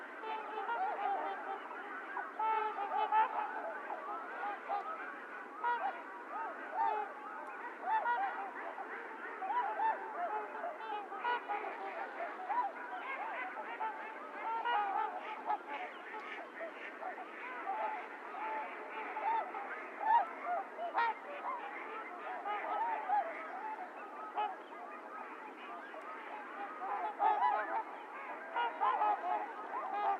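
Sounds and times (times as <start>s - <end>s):
Trumpeter swans giving bugling honks: 0.0s - 30.1s.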